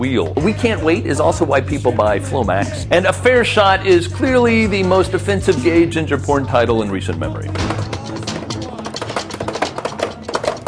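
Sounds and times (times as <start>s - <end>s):
speech: 0.0s - 7.9s
dubstep remix of a presidential anthem: 0.1s - 10.6s.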